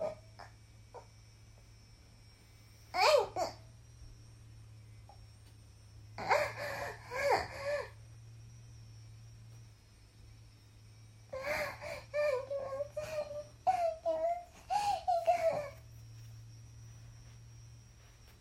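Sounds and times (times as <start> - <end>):
22-year-old woman moaning and climaxing: 6.2 - 8.0, 11.4 - 15.8.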